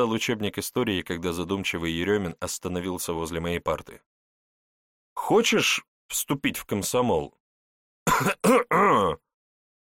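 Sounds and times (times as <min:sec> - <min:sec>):
speech: 0:00.0 - 0:04.1, 0:05.2 - 0:07.4, 0:08.2 - 0:09.2
throaty coughs after choking on air: 0:08.1 - 0:09.2.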